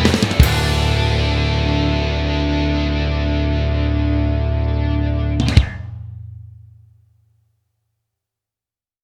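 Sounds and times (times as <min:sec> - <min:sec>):
instrumental music: 0:00.0 - 0:06.8.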